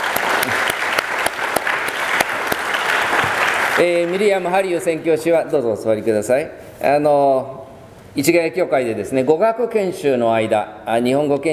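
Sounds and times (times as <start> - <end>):
audience applauding: 0.0 - 5.0
speech: 3.8 - 11.5.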